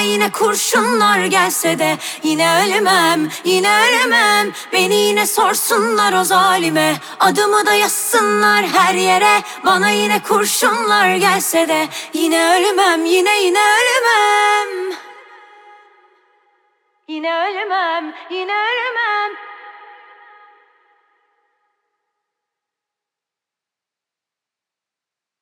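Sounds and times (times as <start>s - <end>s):
a cappella singing: 0.0s - 16.3s, 17.1s - 21.0s.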